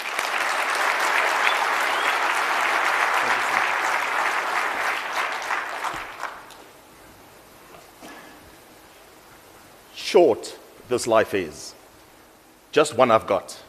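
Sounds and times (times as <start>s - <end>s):
audience applause: 0.0s - 6.6s
speech: 10.2s - 11.8s, 12.7s - 13.6s.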